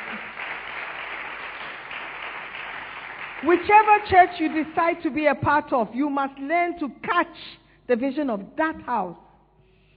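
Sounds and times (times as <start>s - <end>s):
church congregation clapping during a bilingual service: 0.0s - 5.0s
speech: 3.4s - 9.2s.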